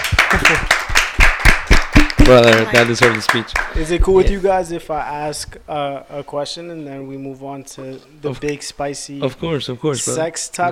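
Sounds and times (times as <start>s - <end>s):
audience clapping: 0.0s - 4.1s
speech: 2.3s - 10.6s.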